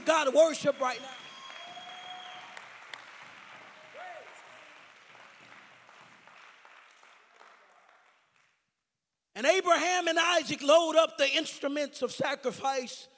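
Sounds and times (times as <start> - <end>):
audience clapping: 0.0 - 8.7
speech: 0.1 - 1.2, 9.4 - 13.1.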